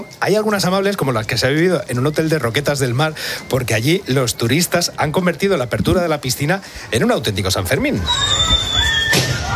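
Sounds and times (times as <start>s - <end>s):
speech: 0.2s - 8.7s
person whistling: 8.0s - 9.4s.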